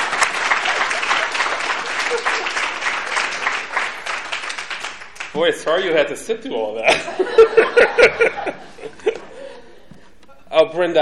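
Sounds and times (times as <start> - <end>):
laughter: 0.0 - 3.7, 6.8 - 10.6
audience applause: 0.0 - 5.4
speech: 5.4 - 9.0, 10.6 - 11.0.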